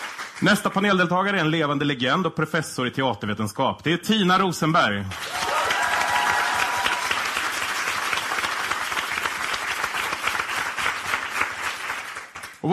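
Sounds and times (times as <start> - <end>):
audience applause: 0.0 - 0.8, 5.1 - 12.6
speech: 0.4 - 5.4.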